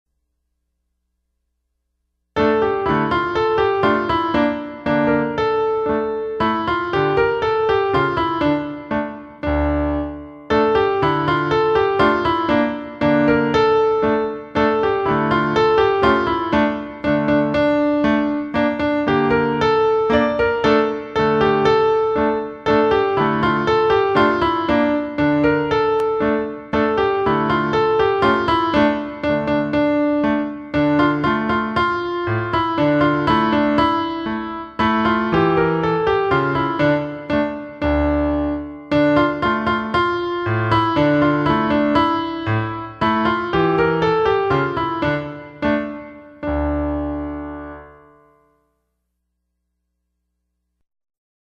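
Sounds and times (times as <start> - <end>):
music: 2.3 - 50.8.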